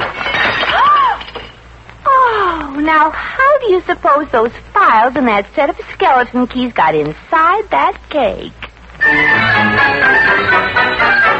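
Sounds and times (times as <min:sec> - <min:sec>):
dropped object crashing and shattering: 0:00.0 - 0:01.7
speech: 0:02.9 - 0:11.2.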